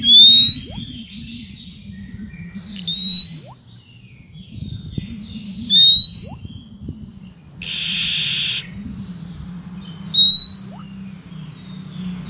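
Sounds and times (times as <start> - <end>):
bird chirping and twittering: 0.0 - 12.2.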